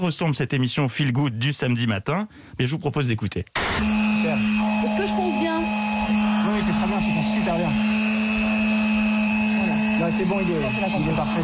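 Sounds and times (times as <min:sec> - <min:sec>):
speech: 0:00.0 - 0:05.7, 0:10.0 - 0:11.4
electric sander running at full power: 0:03.6 - 0:11.4.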